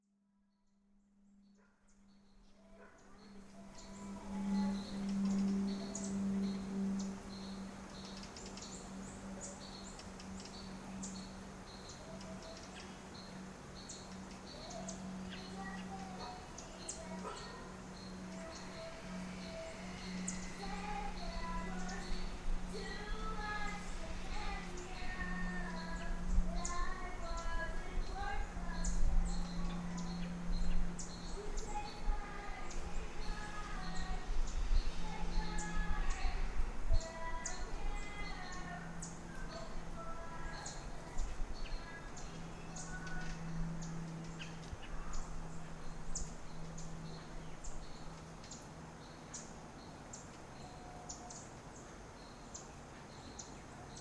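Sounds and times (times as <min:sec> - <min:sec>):
backyard birds: 0:01.4 - 0:54.0
neighbour singing: 0:03.2 - 0:09.9, 0:14.5 - 0:44.0.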